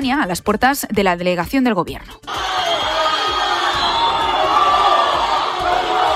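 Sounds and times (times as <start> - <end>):
speech: 0.0 - 2.4
crowd booing: 2.3 - 6.1.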